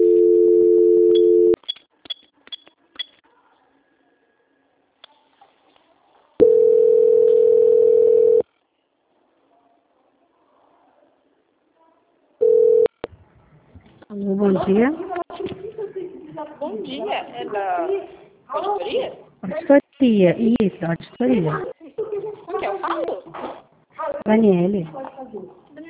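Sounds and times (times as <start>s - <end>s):
telephone line tone during a call transfer: 0.0s - 1.6s, 6.4s - 8.4s, 12.4s - 13.0s
speech: 14.7s - 15.0s, 17.0s - 21.8s, 24.2s - 25.4s.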